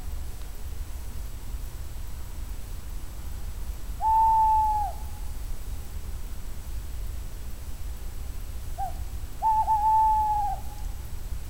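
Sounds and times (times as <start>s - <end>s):
male tawny owl Strix aluco singing: 4.0s - 5.0s, 8.8s - 10.7s.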